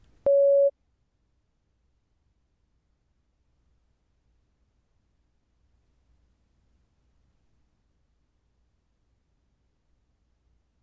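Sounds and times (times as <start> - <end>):
beep tone: 0.3 - 0.7.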